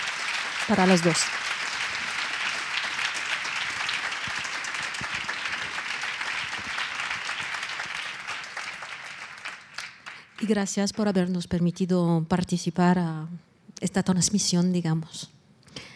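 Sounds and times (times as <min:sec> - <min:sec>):
audience applause: 0:00.0 - 0:10.6
speech: 0:00.7 - 0:01.4, 0:10.5 - 0:15.4.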